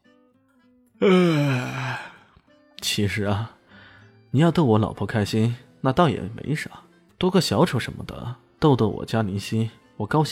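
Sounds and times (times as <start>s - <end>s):
speech: 1.0s - 1.3s, 3.0s - 3.6s, 4.3s - 10.3s
person yawning: 1.0s - 2.3s.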